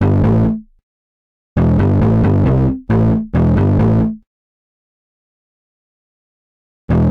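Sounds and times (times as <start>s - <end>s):
bass: 0.0s - 0.8s, 1.6s - 4.3s, 6.9s - 7.0s.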